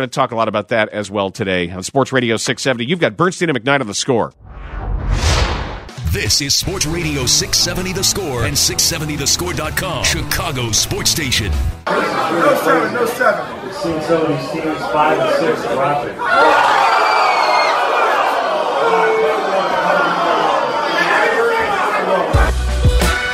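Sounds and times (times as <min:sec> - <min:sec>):
speech: 0:00.0 - 0:05.3, 0:06.1 - 0:16.8
crowd chattering at a draft party: 0:06.1 - 0:16.7, 0:18.6 - 0:22.6
crowd cheering loudly at a draft party: 0:06.1 - 0:23.3.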